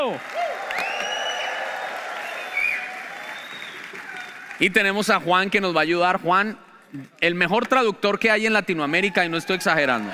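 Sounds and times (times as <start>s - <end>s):
speech: 0.0s - 0.4s, 4.6s - 10.1s
high cheers and whoops: 0.0s - 4.6s, 9.1s - 10.1s
audience clapping: 0.0s - 5.5s.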